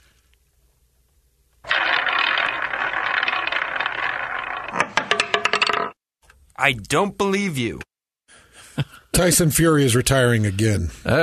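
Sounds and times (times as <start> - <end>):
prize wheel spinning: 1.6 - 6.0
speech: 6.6 - 7.9, 9.2 - 11.2.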